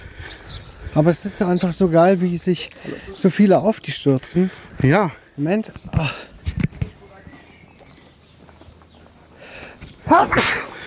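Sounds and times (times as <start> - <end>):
speech: 1.0 - 6.3, 10.1 - 10.7
sneeze: 10.1 - 10.7.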